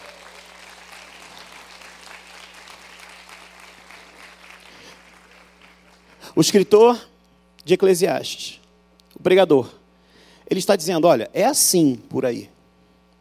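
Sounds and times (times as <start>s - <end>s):
audience applauding: 0.0s - 6.2s
speech: 6.3s - 8.6s, 9.2s - 9.8s, 10.5s - 12.6s.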